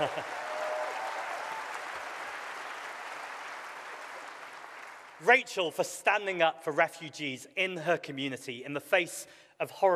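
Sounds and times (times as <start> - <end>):
audience applause: 0.0 - 5.3
speech: 5.2 - 9.9.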